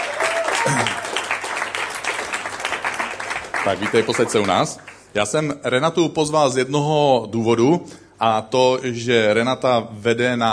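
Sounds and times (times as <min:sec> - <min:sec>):
audience applause: 0:00.0 - 0:05.0
speech: 0:00.7 - 0:01.0, 0:03.6 - 0:10.5.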